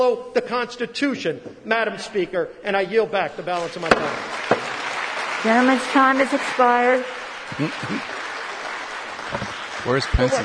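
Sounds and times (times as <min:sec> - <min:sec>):
speech: 0:00.0 - 0:04.4, 0:05.4 - 0:08.2, 0:09.3 - 0:10.4
audience clapping: 0:03.6 - 0:10.4.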